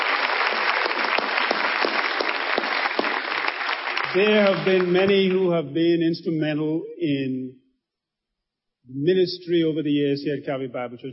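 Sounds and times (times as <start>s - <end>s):
audience applause: 0.0s - 5.5s
speech: 4.1s - 7.6s, 8.9s - 11.1s.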